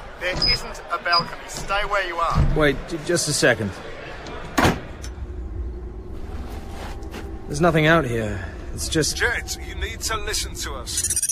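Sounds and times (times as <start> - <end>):
door opening onto a balcony: 0.2 - 2.6, 4.2 - 5.2
speech: 0.2 - 4.0, 7.5 - 11.3
low rumble: 4.3 - 10.9.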